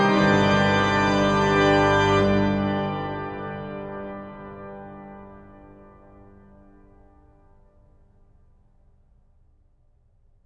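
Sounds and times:
organ piece: 0.0s - 6.9s.

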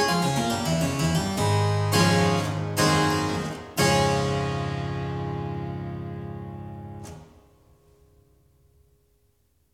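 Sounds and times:
prelude in C-sharp major on clavier: 0.0s - 7.1s.

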